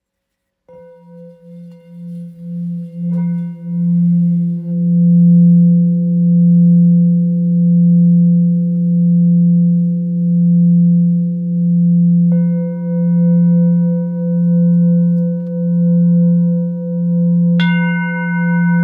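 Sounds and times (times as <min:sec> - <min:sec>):
Tibetan full moon lingam singing bowl in F: 0:00.7 - 0:18.8.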